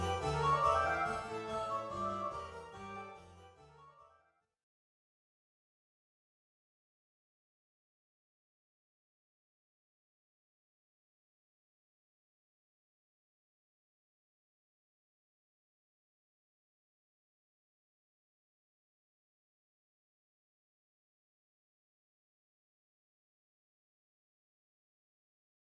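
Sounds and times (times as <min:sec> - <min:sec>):
MIDI music: 0:00.0 - 0:03.9.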